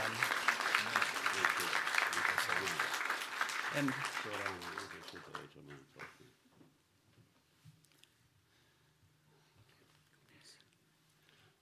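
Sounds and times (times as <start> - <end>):
audience applauding: 0.0 - 6.2
speech: 3.8 - 6.4.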